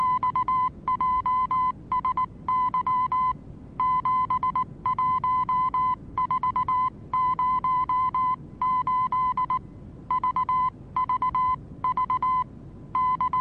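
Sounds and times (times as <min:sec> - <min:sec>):
Morse code: 0:00.0 - 0:13.3.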